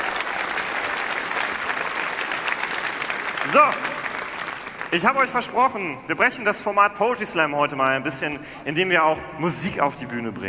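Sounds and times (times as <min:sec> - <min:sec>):
audience applause: 0:00.0 - 0:05.8
speech: 0:03.5 - 0:04.0, 0:04.9 - 0:10.4.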